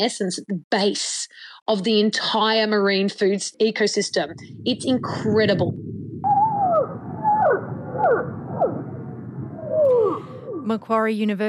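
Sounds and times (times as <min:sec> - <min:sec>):
speech: 0:00.0 - 0:06.0, 0:10.6 - 0:11.4
steady low rumbling background: 0:04.1 - 0:11.4
blue whale calls: 0:06.1 - 0:10.7.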